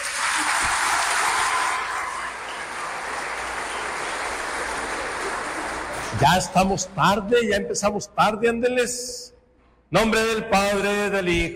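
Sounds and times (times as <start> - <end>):
audience applause: 0.0 - 6.6
speech: 6.2 - 9.3, 9.9 - 11.5.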